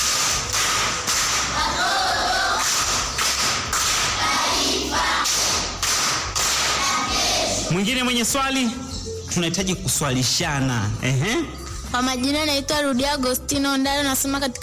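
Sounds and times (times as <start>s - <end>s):
school quiz audience clapping for a contestant: 0.0s - 7.5s
speech: 7.7s - 14.6s.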